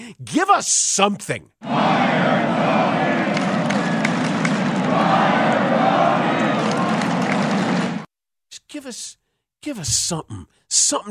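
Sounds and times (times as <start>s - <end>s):
speech: 0.1s - 2.8s, 8.8s - 11.0s
large stadium crowd roaring and cheering: 1.6s - 8.1s.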